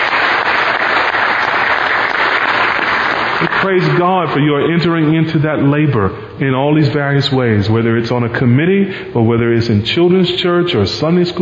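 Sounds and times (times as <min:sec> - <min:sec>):
audience clapping: 0:00.0 - 0:04.6
speech: 0:03.6 - 0:11.4.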